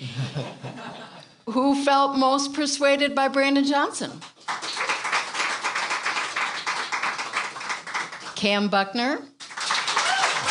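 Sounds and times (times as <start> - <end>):
laughter: 0.0 - 1.3
speech: 0.4 - 0.6, 1.5 - 4.3, 8.4 - 9.3
audience applause: 4.4 - 8.4, 9.4 - 10.4.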